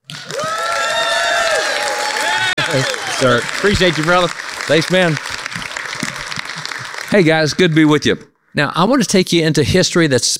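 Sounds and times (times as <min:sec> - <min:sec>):
audience applause and cheering greeting a speaker at an evening event: 0:00.0 - 0:08.1
speech: 0:02.7 - 0:05.4, 0:07.1 - 0:10.3.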